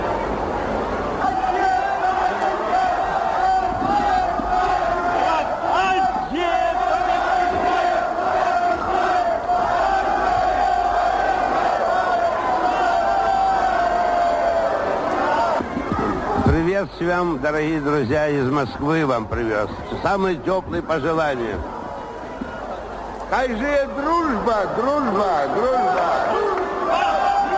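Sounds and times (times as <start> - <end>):
large crowd cheering and chanting at a railway station: 1.0 - 16.8, 21.3 - 27.5
speech: 17.0 - 21.8, 23.3 - 26.5.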